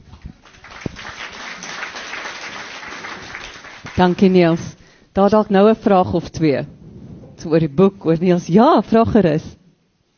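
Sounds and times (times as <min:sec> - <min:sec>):
audience applause: 0:00.4 - 0:04.3
speech: 0:04.0 - 0:06.8, 0:07.4 - 0:09.6.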